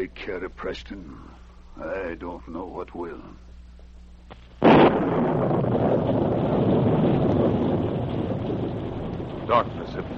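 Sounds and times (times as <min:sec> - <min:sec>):
speech: 0:00.0 - 0:03.5, 0:09.5 - 0:10.1
violent storm wind: 0:04.6 - 0:10.1.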